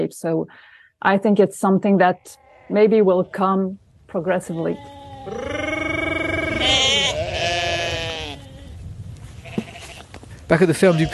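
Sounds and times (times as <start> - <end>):
speech: 0.0 - 5.7, 10.5 - 11.1
sheep bleating: 2.1 - 3.4, 4.4 - 8.8, 9.4 - 10.1, 10.7 - 11.1.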